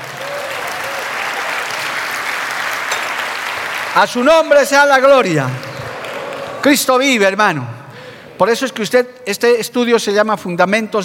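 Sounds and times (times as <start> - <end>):
audience applauding: 0.0 - 7.0
speech: 4.0 - 5.7, 6.6 - 7.8, 8.4 - 11.0.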